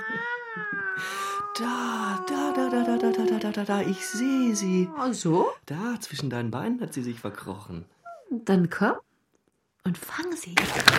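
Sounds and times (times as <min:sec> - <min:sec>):
cat meowing: 0:00.0 - 0:05.3
speech: 0:01.0 - 0:09.1, 0:09.8 - 0:10.9.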